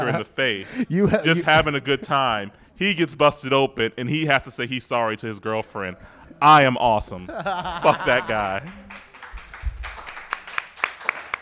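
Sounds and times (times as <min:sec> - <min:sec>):
laughter: 0:00.0 - 0:02.5, 0:07.2 - 0:09.0
speech: 0:00.0 - 0:09.1
hand claps: 0:08.1 - 0:11.4.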